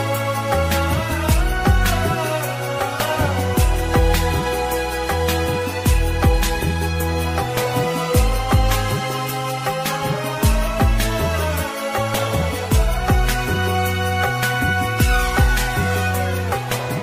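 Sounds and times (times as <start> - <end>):
slowed flute instrumental ringtone with reverb: 0.0 - 17.0.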